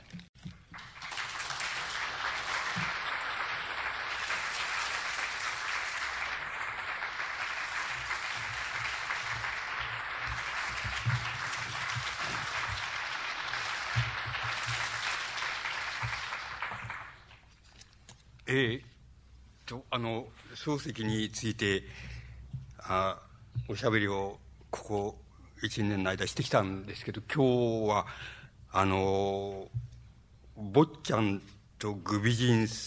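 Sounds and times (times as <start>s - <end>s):
audience applause: 0.5s - 17.5s
speech: 18.5s - 18.8s, 19.7s - 22.1s, 22.9s - 29.8s, 30.6s - 32.8s.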